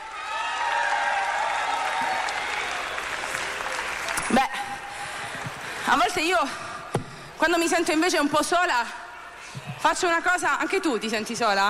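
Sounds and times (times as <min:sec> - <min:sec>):
audience applause: 0:00.0 - 0:05.9
speech: 0:05.9 - 0:06.7, 0:07.4 - 0:09.0, 0:09.8 - 0:11.6.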